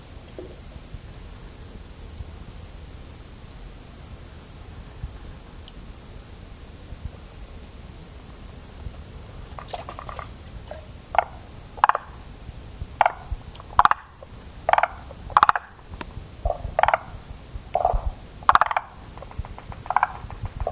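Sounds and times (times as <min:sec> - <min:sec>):
forest green tree frog croaking: 0:09.5 - 0:20.6.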